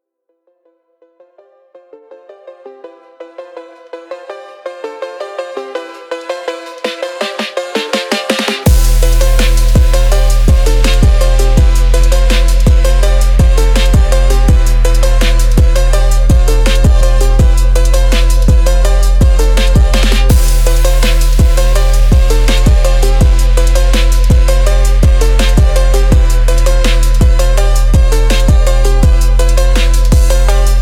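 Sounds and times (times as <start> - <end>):
drift phonk music: 1.8 - 30.7.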